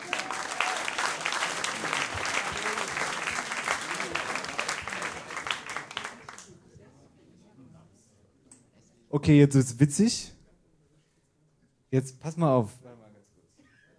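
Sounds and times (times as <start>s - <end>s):
audience applause: 0.0s - 6.5s
speech: 9.2s - 10.4s, 11.9s - 12.9s.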